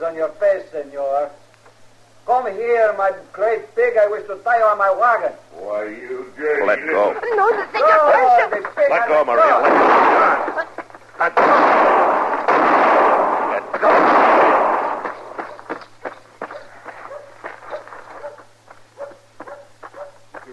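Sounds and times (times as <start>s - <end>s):
speech: 0.0s - 1.4s, 2.3s - 12.1s
gunshots in a street shootout: 9.4s - 10.6s, 11.2s - 15.7s
sharp cracks and clatters: 9.6s - 18.2s.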